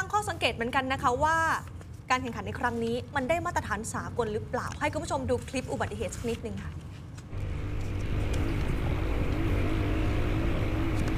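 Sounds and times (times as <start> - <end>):
speech: 0.2 - 7.0
enduro motorcycle engine ridden fast on a narrow track at Pak Chong: 7.3 - 11.1.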